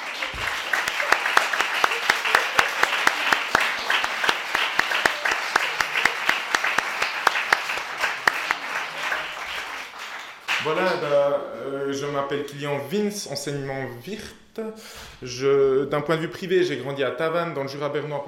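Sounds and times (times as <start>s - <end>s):
audience applause: 0.0s - 11.2s
speech: 10.7s - 18.2s.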